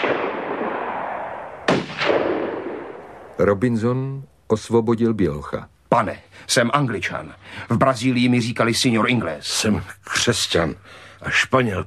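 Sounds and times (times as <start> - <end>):
gunshots fired at a boat: 0.0 - 3.1
speech: 3.4 - 11.8.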